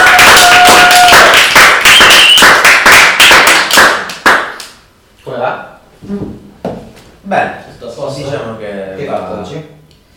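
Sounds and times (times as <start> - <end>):
audience applause: 0.0 - 4.6
speech: 7.3 - 8.4.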